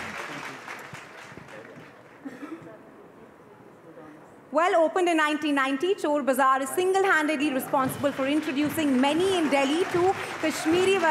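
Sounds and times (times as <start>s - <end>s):
audience applause: 0.0s - 2.2s, 8.1s - 11.0s
speech: 4.6s - 11.0s.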